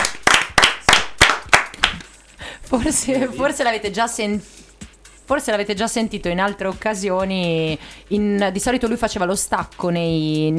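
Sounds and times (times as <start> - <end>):
applause: 0.0 - 2.2
speech: 2.7 - 4.6, 5.3 - 10.5.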